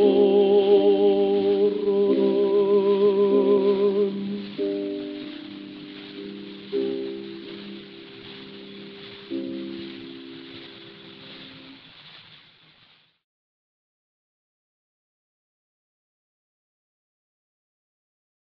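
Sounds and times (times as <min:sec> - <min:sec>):
gramophone: 0:00.0 - 0:08.0.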